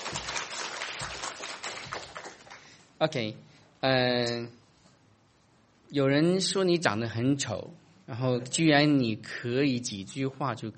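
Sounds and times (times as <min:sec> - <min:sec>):
audience applauding a husband and wife: 0:00.0 - 0:02.8
speech: 0:03.0 - 0:04.6, 0:05.9 - 0:10.7.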